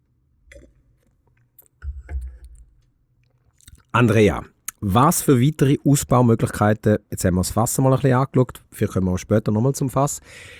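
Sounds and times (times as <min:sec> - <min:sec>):
person sipping and swallowing a drink at a tasting: 0:00.5 - 0:04.8
speech: 0:03.9 - 0:10.5.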